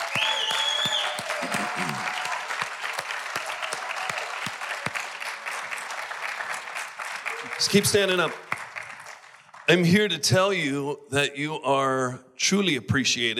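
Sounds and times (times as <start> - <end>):
round of applause: 0.0 - 10.2
speech: 7.6 - 8.4, 9.7 - 13.3.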